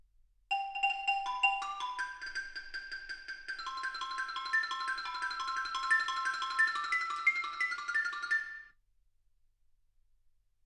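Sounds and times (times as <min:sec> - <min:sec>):
xylophone: 0:00.5 - 0:08.7.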